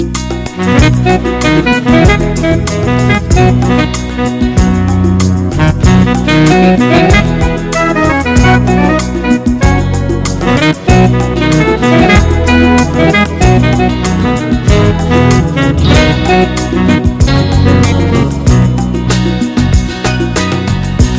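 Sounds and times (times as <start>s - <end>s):
slow happy music: 0.0s - 21.1s.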